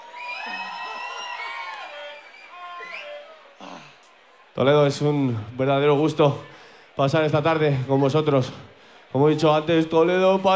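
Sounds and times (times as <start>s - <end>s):
crowd cheering and whooping: 0.0s - 3.7s
speech: 4.6s - 10.5s.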